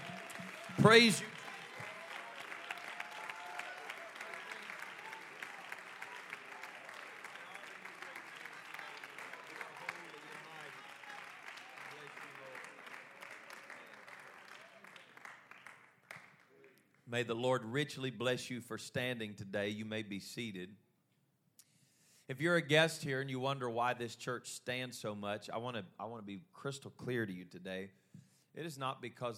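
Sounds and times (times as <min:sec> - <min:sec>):
audience shouting: 0:00.0 - 0:09.6
audience clapping hands: 0:00.0 - 0:17.1
speech: 0:00.8 - 0:01.4, 0:17.2 - 0:20.8, 0:22.3 - 0:28.0, 0:28.6 - 0:29.3.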